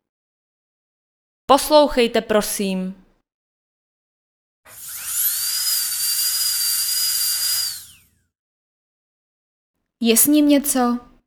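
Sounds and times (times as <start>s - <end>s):
speech: 1.5s - 3.0s, 10.0s - 11.1s
dentist's drill whining: 4.7s - 8.2s.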